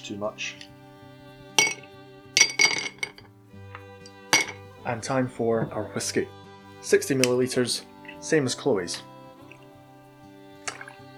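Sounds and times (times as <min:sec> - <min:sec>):
speech: 0:00.1 - 0:00.7, 0:04.8 - 0:09.1
ice cubes clinking into a glass: 0:01.6 - 0:03.2, 0:04.4 - 0:04.6.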